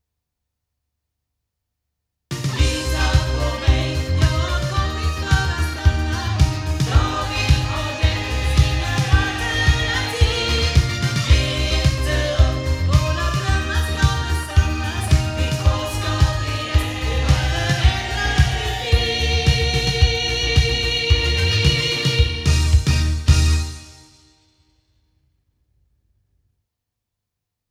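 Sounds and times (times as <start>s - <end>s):
loudspeakers: 2.4s - 23.6s.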